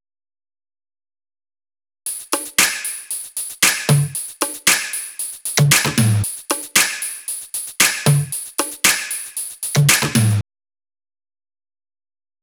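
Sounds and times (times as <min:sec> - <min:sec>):
top drum loop: 0:02.1 - 0:10.4.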